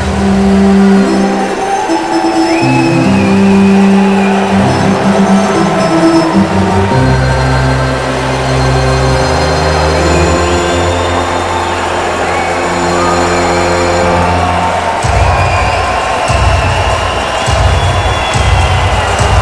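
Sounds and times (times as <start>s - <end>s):
organ: 0.2s - 19.3s.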